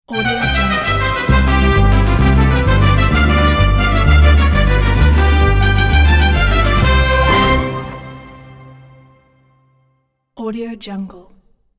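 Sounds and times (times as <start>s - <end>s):
Mexican intro logo music: 0.1s - 9.4s.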